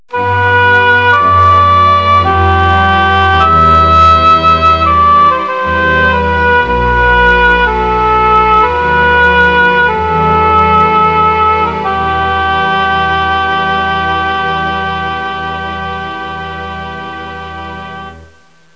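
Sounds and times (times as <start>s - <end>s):
new age music: 0.1s - 18.7s.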